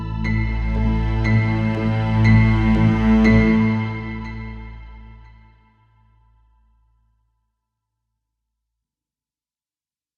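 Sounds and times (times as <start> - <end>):
icy strings: 0.2 - 5.5.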